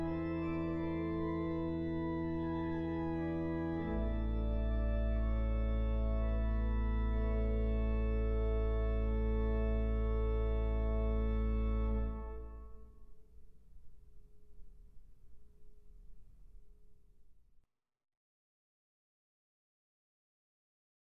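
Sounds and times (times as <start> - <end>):
classical prelude and fugue in A minor: 0.0 - 13.2.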